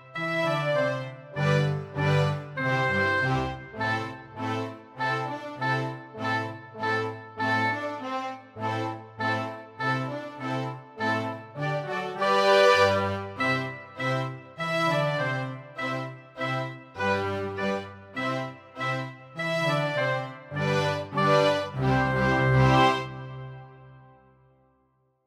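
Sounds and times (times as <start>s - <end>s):
flute playing: 0.0s - 24.2s.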